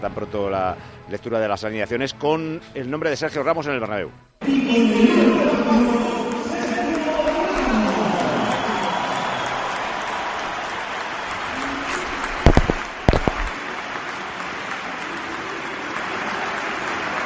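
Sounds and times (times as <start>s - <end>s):
speech: 0.0s - 6.1s
long ovation from stadium crowd: 4.4s - 17.2s.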